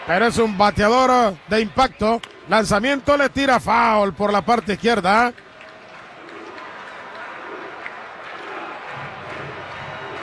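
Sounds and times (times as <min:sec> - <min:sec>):
stadium crowd cheering: 0:00.0 - 0:10.2
speech: 0:00.1 - 0:05.5
stadium crowd clapping rhythmically: 0:03.4 - 0:10.2.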